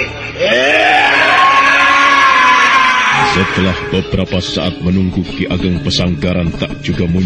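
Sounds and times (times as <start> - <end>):
man's long furious echoing scream: 0.4 - 3.9
speech: 3.4 - 7.2.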